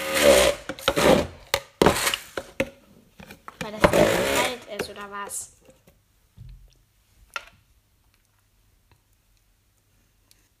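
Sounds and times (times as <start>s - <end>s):
thick smoothie mixture being stirred and scraped: 0.0s - 2.6s, 3.2s - 5.4s
speech: 5.0s - 5.6s.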